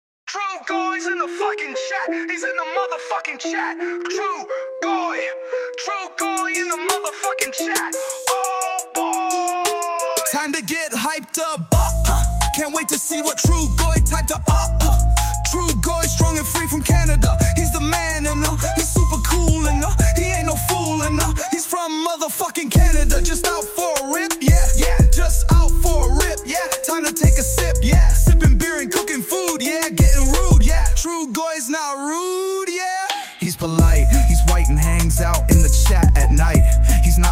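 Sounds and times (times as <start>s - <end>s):
rap music: 0.3s - 37.2s.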